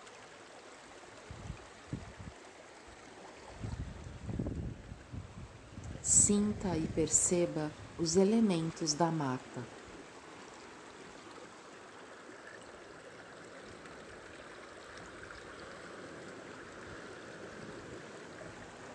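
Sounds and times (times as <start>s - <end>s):
freshwater stream flowing down from waterfall: 0.0s - 18.9s
speech: 6.2s - 9.8s.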